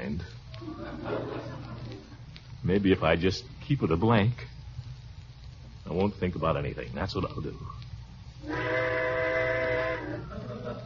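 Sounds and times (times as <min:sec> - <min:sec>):
laughter: 0:00.6 - 0:02.2, 0:10.1 - 0:10.8
speech: 0:02.6 - 0:04.5, 0:05.9 - 0:07.8
train whistle blowing: 0:08.4 - 0:10.4.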